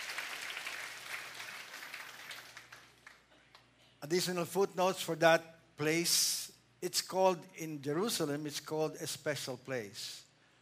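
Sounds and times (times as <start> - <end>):
audience clapping: 0.0 - 3.7
speech: 4.0 - 10.2.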